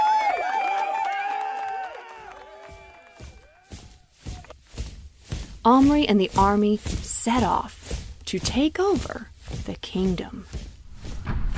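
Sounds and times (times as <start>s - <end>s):
men cheering: 0.0s - 4.5s
speech: 5.6s - 10.6s.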